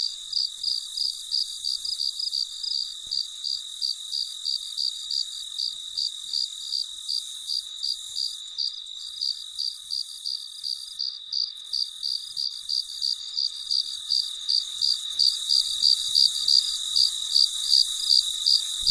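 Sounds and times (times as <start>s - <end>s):
cricket chirping: 0.0s - 18.8s
insect chorus: 0.0s - 18.8s.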